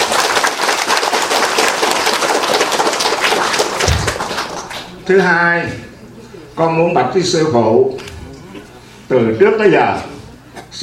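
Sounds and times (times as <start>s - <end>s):
audience applause: 0.0s - 5.1s
speech: 5.1s - 5.9s, 6.6s - 8.0s, 9.1s - 10.1s.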